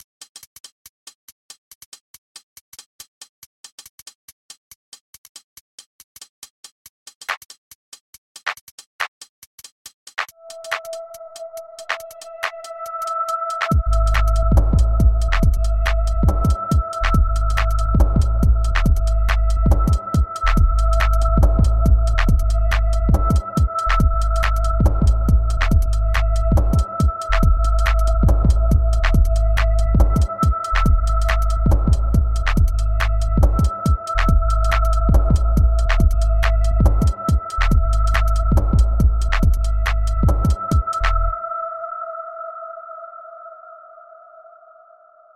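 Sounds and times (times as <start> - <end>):
music beat: 11.8 - 41.1.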